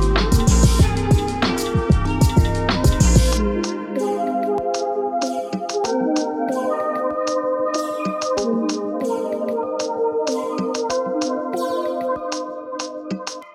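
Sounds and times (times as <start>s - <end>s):
instrumental conscious hip hop beat: 0.0s - 13.5s.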